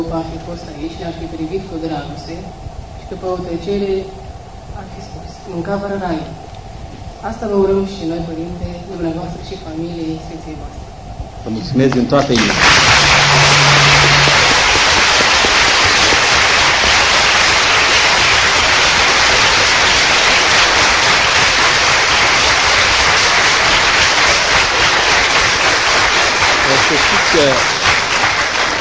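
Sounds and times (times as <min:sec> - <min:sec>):
speech: 0:00.0 - 0:06.5, 0:07.2 - 0:14.2, 0:26.9 - 0:27.8
audience applause: 0:12.3 - 0:28.7.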